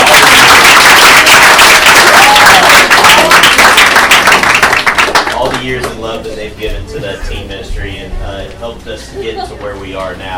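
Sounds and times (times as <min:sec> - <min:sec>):
audience applause: 0:00.0 - 0:05.7.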